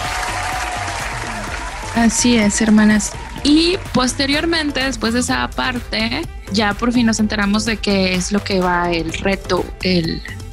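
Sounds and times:
group applauding: 0:00.0 - 0:05.2
speech: 0:02.0 - 0:10.4.

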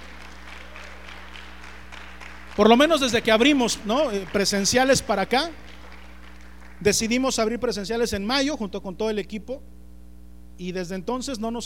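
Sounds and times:
audience applause: 0:00.0 - 0:07.0
faint low electrical hum: 0:00.0 - 0:11.6
speech: 0:02.6 - 0:05.7, 0:06.8 - 0:09.7, 0:10.6 - 0:11.6.

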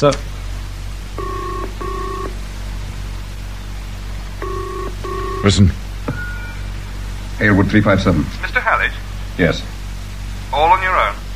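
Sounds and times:
speech: 0:00.0 - 0:00.3, 0:05.4 - 0:05.8, 0:07.4 - 0:09.7, 0:10.5 - 0:11.2
steady low hum and hiss: 0:00.0 - 0:11.3
telephone ringing with an incoming call: 0:01.2 - 0:02.4, 0:04.4 - 0:06.6.

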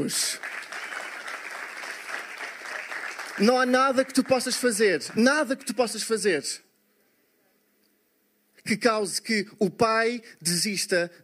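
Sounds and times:
speech: 0:00.0 - 0:00.6, 0:03.4 - 0:06.7, 0:08.7 - 0:11.2
big round of applause from a crowd: 0:00.4 - 0:05.4.

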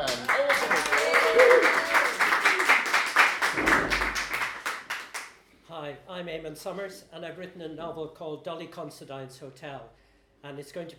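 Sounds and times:
room full of people applauding: 0:00.0 - 0:05.4
voices and cheers: 0:00.2 - 0:02.5
speech: 0:06.4 - 0:10.9.

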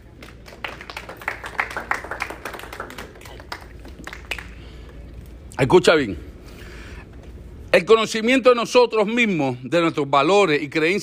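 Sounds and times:
audience applause: 0:00.0 - 0:04.7
speech: 0:05.6 - 0:06.3, 0:07.8 - 0:11.0.

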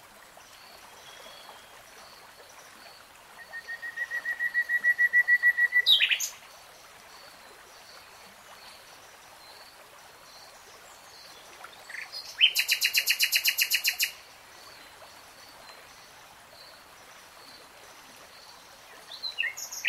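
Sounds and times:
nightingale song: 0:03.4 - 0:06.4, 0:11.9 - 0:14.2, 0:19.1 - 0:19.8.

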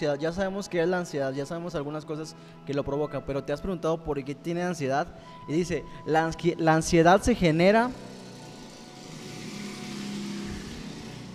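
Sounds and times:
speech: 0:00.0 - 0:08.1
motorcycle passing by outside: 0:07.9 - 0:11.3.

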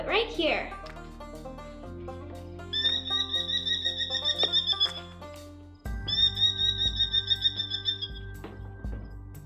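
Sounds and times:
merlin calling: 0:02.7 - 0:05.1, 0:05.9 - 0:08.4.

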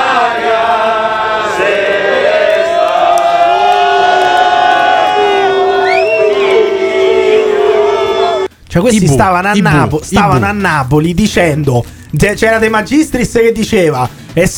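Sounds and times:
large crowd whistling at national anthem: 0:00.0 - 0:08.6
speech: 0:08.7 - 0:14.5.

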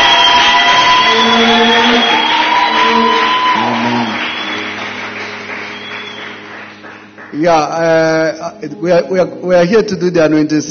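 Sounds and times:
audience clapping and cheering: 0:00.0 - 0:07.8
speech: 0:07.4 - 0:10.6.

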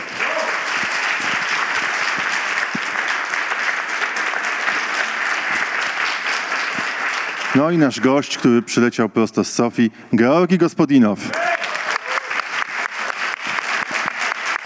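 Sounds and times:
audience applause: 0:00.0 - 0:08.4, 0:11.3 - 0:14.6
speech: 0:07.6 - 0:11.4.

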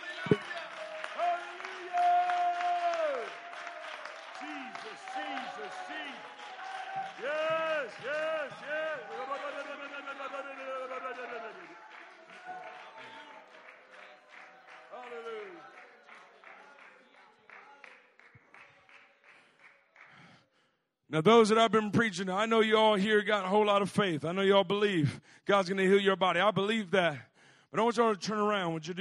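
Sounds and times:
audience clapping hands: 0:00.0 - 0:20.4
speech: 0:21.2 - 0:28.9.

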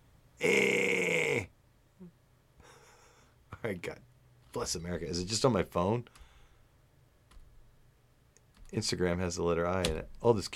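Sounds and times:
man groaning while straining: 0:00.4 - 0:01.5
speech: 0:03.7 - 0:06.2, 0:08.8 - 0:10.5.

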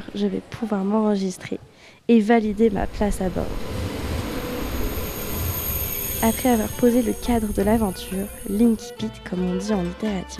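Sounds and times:
speech: 0:00.2 - 0:03.8, 0:06.2 - 0:10.3
train approaching the platform with low rumble: 0:02.4 - 0:08.8
high-pitched squeal of train wheels on rails: 0:02.9 - 0:08.9.

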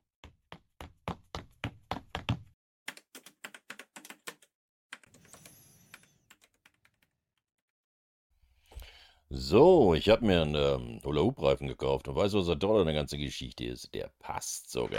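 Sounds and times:
fast keyboard typing: 0:02.2 - 0:07.6
speech: 0:09.3 - 0:14.9.

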